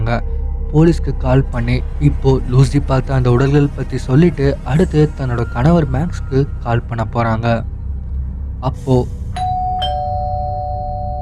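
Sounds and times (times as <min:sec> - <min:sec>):
speech: 0:00.1 - 0:07.7, 0:08.6 - 0:09.2
doorbell ringing: 0:09.4 - 0:11.2.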